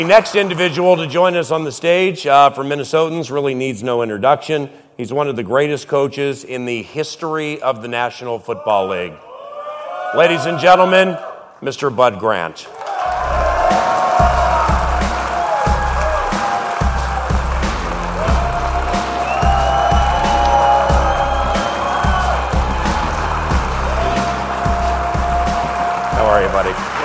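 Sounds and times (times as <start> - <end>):
audience applause: 0.0 - 1.1, 12.7 - 27.0
audience cheering: 0.0 - 1.2, 9.3 - 11.4, 12.7 - 27.0
speech: 0.0 - 9.3, 10.1 - 12.9.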